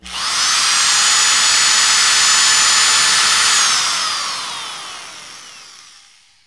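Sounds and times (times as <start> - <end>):
drill: 0.0 - 6.4.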